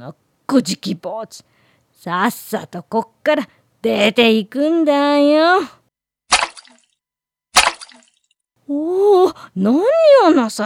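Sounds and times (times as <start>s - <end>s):
speech: 0.0s - 5.8s, 8.7s - 10.6s
water from a tub flung from a ladle onto a person: 6.3s - 6.8s, 7.6s - 8.2s.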